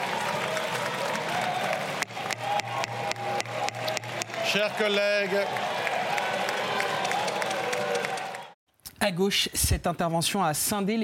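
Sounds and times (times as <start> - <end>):
deputies applauding in parliament: 0.0 - 8.6
speech: 4.5 - 5.7, 9.0 - 11.0.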